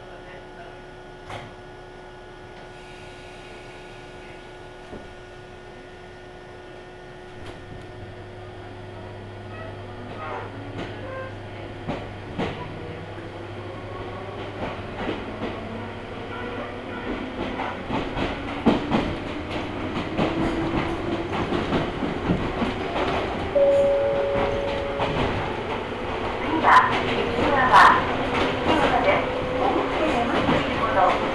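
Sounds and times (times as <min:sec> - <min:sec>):
Ohmi Railway train humming: 0:00.6 - 0:31.3
Ohmi Railway train rattling: 0:09.0 - 0:31.3.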